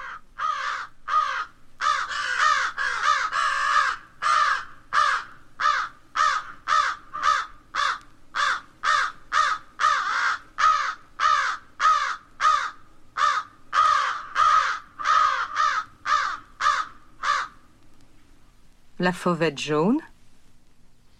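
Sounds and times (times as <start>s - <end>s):
American crow cawing: 0.0s - 17.7s
speech: 19.0s - 20.1s.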